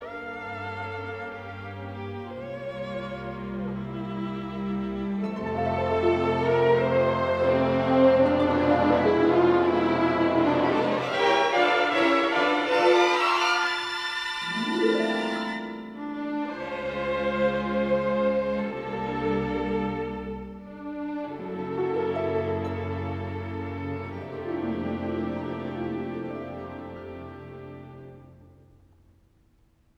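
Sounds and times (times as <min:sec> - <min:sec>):
string serenade: 0:00.0 - 0:28.7.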